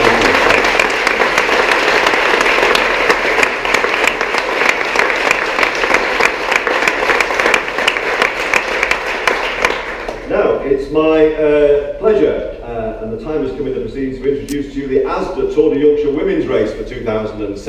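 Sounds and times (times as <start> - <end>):
crowd applause: 0.0 - 10.2
speech: 10.9 - 17.6.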